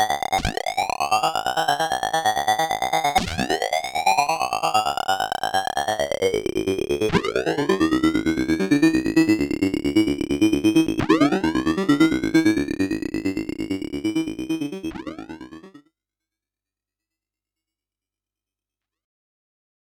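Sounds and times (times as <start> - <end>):
random synthesizer loop with filter and modulated second oscillator frequency: 0.0 - 15.8.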